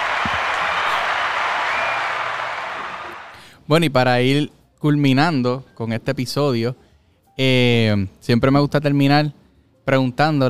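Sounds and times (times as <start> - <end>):
audience applause: 0.0 - 3.4
speech: 3.7 - 6.8, 7.4 - 10.4.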